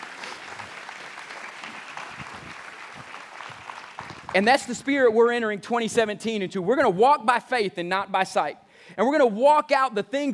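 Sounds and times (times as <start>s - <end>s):
audience hand clapping: 0.0s - 5.0s
speech: 4.4s - 10.3s.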